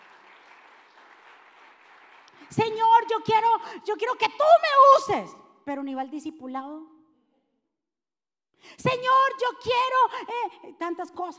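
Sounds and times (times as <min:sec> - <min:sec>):
crowd applauding: 0:00.0 - 0:02.5
speech: 0:02.4 - 0:06.9, 0:08.6 - 0:11.3.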